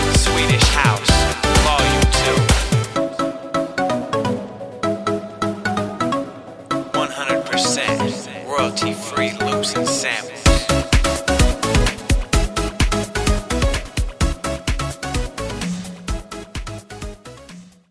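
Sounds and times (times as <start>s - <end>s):
Swedish house music: 0.0s - 17.8s.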